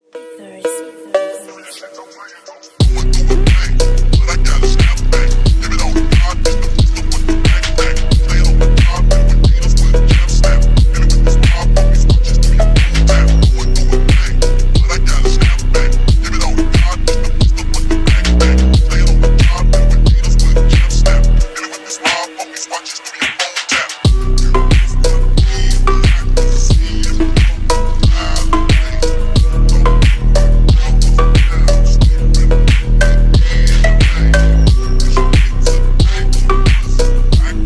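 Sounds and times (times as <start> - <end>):
slowed phonk music: 0.0 - 37.6.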